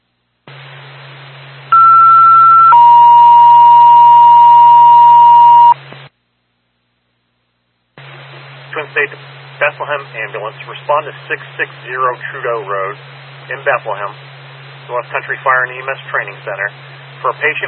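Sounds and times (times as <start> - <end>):
radio channel hiss: 0.5 - 1.7, 8.0 - 17.6
ambulance dispatch alert tones over a radio channel: 1.7 - 5.8
speech: 9.8 - 14.3, 14.9 - 17.6.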